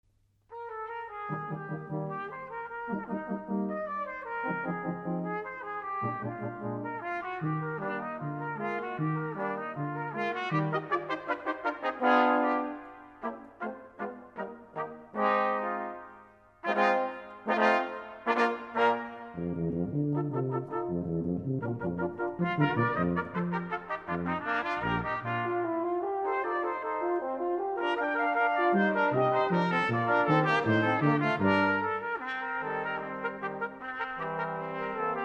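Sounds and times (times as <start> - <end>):
brass quintet playing allegro grazioso: 0.5 - 35.2.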